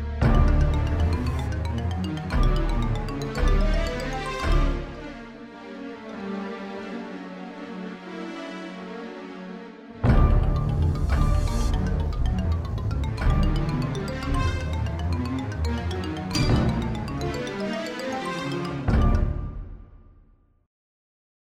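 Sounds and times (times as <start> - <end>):
heavy tension psychotic chase scene soundtrack music: 0.2 - 5.5, 10.0 - 20.0.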